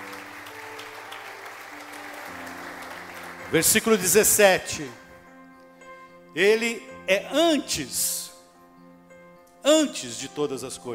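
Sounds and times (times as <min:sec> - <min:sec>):
audience applause: 0:00.0 - 0:04.2
speech: 0:03.5 - 0:05.0, 0:06.3 - 0:08.3, 0:09.6 - 0:10.9.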